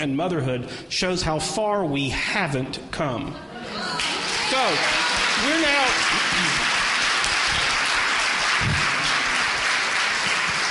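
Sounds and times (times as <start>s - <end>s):
speech: 0.0s - 6.6s
team clapping: 3.9s - 10.6s.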